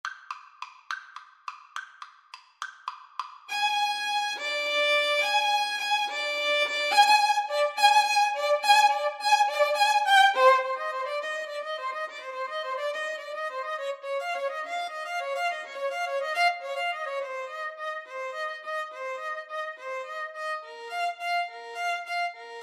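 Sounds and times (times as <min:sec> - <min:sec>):
violin and viola duet: 0:03.5 - 0:22.6.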